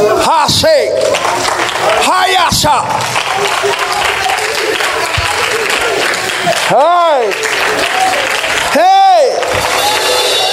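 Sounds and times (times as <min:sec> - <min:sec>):
audience clapping: 0:00.6 - 0:10.5
speech: 0:02.6 - 0:04.0, 0:06.7 - 0:08.0, 0:08.7 - 0:09.0.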